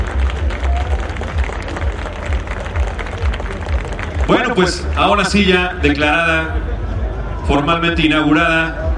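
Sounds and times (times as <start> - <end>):
audience applause: 0.0 - 5.4
speech: 4.3 - 6.7, 7.5 - 8.8.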